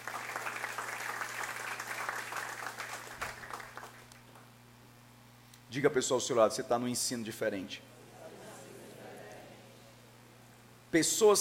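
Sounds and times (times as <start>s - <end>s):
audience applause: 0.0s - 4.1s
speech: 5.7s - 7.9s, 10.9s - 11.3s.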